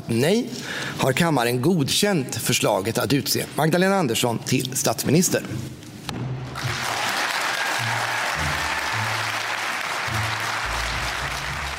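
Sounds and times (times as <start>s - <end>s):
speech: 0.1s - 5.9s
applause in parliament chamber: 6.5s - 11.7s.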